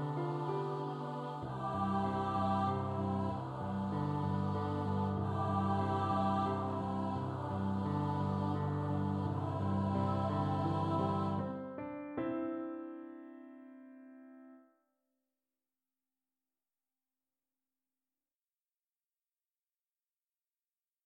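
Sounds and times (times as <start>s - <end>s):
Christmas duet: 0.0s - 14.6s.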